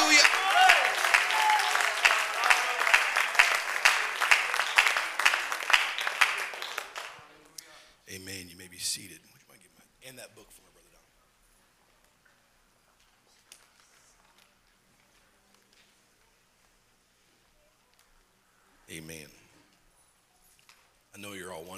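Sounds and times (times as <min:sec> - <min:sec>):
person speaking: 0:00.0 - 0:00.5
crowd clapping in sustained applause: 0:00.0 - 0:07.4.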